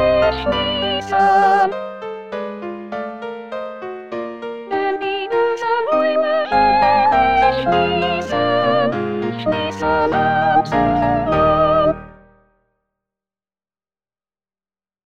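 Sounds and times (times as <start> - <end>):
soprano singing: 0.0 - 1.8, 4.7 - 12.2.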